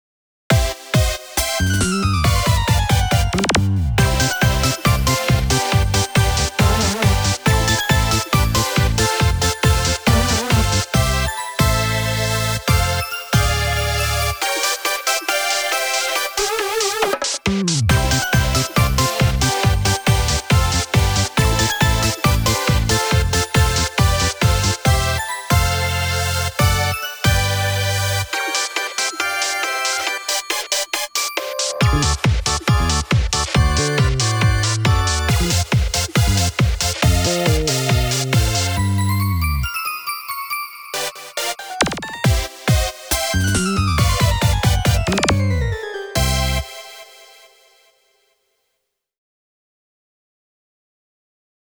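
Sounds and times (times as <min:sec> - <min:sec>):
comical magical music: 0:00.6 - 0:17.2, 0:17.9 - 0:47.8.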